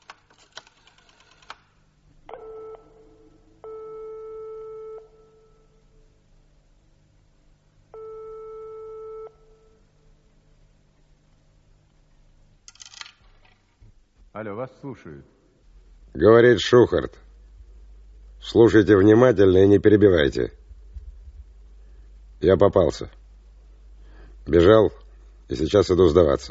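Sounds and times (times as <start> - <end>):
phone line tones: 2.3 - 5.8, 7.9 - 9.8
speech: 14.4 - 15.4, 16.1 - 17.2, 18.5 - 20.6, 22.4 - 23.2, 24.5 - 26.4.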